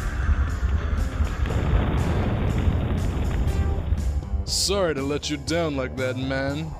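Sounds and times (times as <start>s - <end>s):
volcanic eruption roar: 0.1s - 4.1s
crackling bursts: 0.4s - 4.5s
speech: 4.7s - 6.7s.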